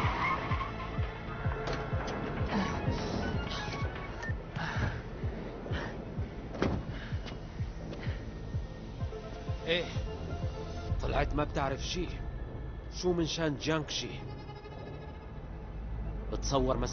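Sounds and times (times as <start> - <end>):
car tires skidding as a car brakes to a stop: 0.0 - 8.0, 13.9 - 16.9
car engine rumble: 0.0 - 16.9
speech: 11.3 - 12.2, 13.0 - 14.4, 16.4 - 16.9.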